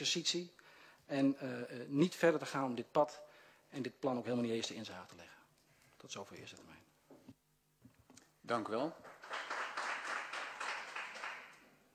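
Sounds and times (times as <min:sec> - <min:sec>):
speech: 0:00.0 - 0:05.4, 0:06.0 - 0:06.9, 0:08.5 - 0:09.1
brief applause from a group: 0:08.6 - 0:11.8.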